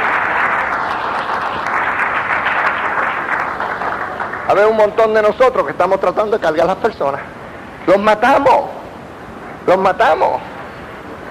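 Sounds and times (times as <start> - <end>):
audience applause: 0.0 - 5.3
speech: 4.5 - 8.8, 9.6 - 10.5.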